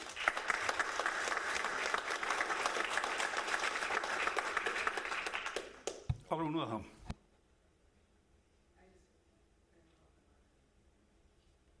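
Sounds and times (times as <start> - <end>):
round of applause: 0.0 - 6.1
speech: 6.4 - 7.0.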